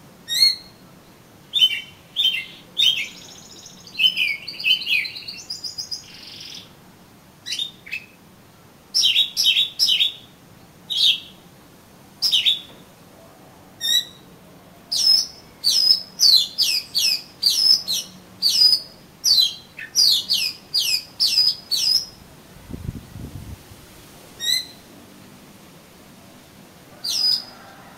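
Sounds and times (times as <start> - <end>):
Oriental magpie-robin song: 0.3 - 6.7, 7.4 - 8.2, 8.9 - 10.3, 10.9 - 11.4, 12.2 - 12.8, 13.8 - 14.3, 14.9 - 22.2, 24.4 - 24.8, 27.0 - 27.6.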